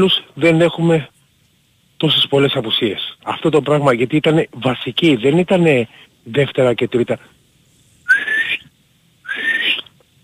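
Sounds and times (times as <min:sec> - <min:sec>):
speech: 0:00.0 - 0:01.1, 0:02.0 - 0:07.3
person making breathy whistle attempts: 0:08.0 - 0:09.9.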